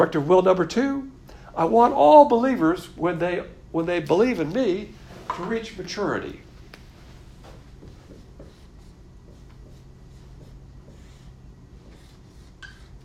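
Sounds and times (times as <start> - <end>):
speech: 0.0 - 6.4
steady hiss: 0.0 - 13.0
scratchy writing strokes drawing a diagram on a board: 7.4 - 13.0.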